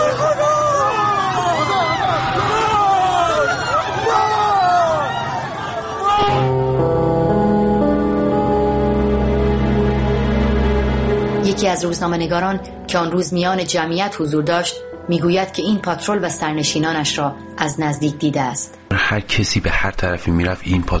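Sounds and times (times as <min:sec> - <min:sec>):
crowd wailing in the street: 0:00.0 - 0:11.4
steady musical tones: 0:06.2 - 0:18.2
speech: 0:11.8 - 0:20.9.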